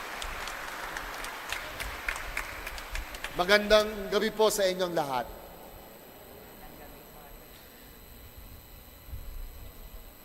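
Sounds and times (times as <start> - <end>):
congregation applauding after a scripture reading at a church service: 0.0 - 5.3
speech: 3.4 - 5.4.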